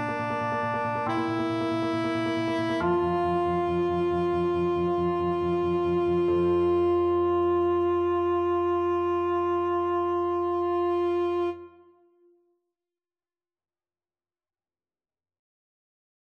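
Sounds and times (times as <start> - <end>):
tenor saxophone: 0.0 - 12.3.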